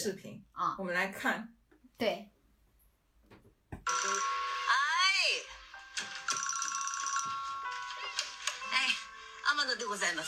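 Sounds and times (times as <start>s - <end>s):
speech: 0.0s - 2.4s, 9.5s - 10.2s
telephone bell ringing: 3.9s - 4.8s, 5.9s - 10.2s.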